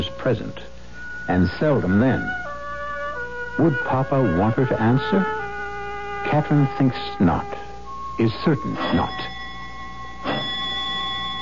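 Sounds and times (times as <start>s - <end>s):
speech: 0.2s - 0.7s, 1.3s - 2.4s, 3.6s - 5.4s, 6.2s - 7.6s, 8.2s - 9.4s
doorbell ringing: 7.9s - 11.3s.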